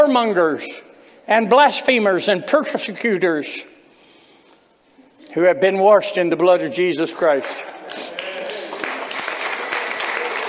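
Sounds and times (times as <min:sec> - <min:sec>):
speech: 0:00.1 - 0:03.8, 0:05.3 - 0:08.0
audience clapping: 0:07.4 - 0:10.4.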